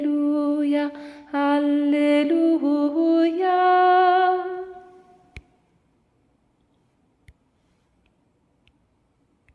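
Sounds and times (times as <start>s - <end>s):
soprano singing: 0.0s - 5.4s.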